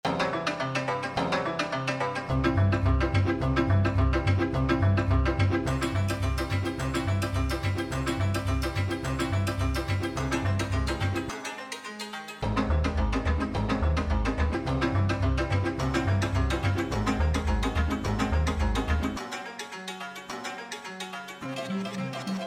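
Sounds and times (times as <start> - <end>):
Slovak grotesque and waltz grotesque music: 0.1 - 22.4.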